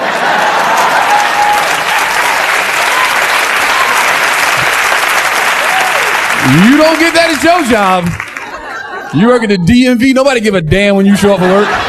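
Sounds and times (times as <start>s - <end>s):
laughter: 0.0s - 1.6s, 6.3s - 10.0s, 11.0s - 11.8s
large crowd applause: 0.0s - 9.2s
speech: 6.5s - 8.2s, 9.1s - 11.8s.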